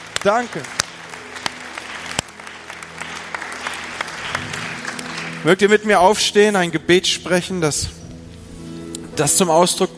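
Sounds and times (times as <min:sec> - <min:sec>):
audience clapping: 0:00.0 - 0:06.8
speech: 0:00.2 - 0:00.8, 0:05.4 - 0:08.0, 0:09.2 - 0:09.9.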